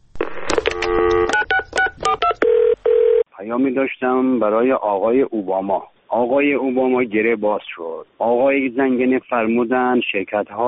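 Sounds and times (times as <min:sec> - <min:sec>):
telephone keypad tones: 0:00.6 - 0:03.2
speech: 0:03.5 - 0:10.6.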